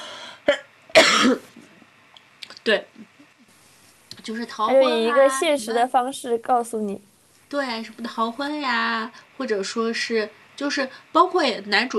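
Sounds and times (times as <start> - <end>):
person coughing: 0.4 - 1.6
speech: 1.2 - 1.6, 2.6 - 3.1, 4.2 - 11.9.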